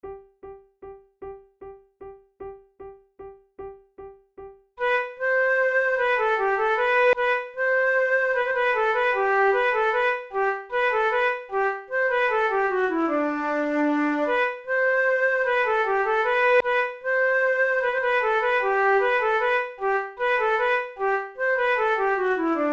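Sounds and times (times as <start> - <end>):
flute: 4.8 - 22.7.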